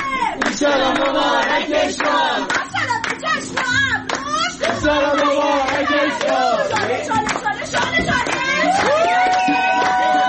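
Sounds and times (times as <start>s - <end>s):
audience clapping for a professor being welcomed at an event: 0.0s - 10.2s
loud cheering voices: 8.4s - 10.2s.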